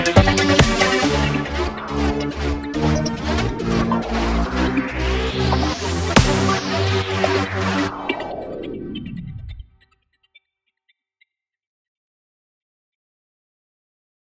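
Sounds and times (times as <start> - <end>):
hippie crackhead music: 0.0 - 10.3.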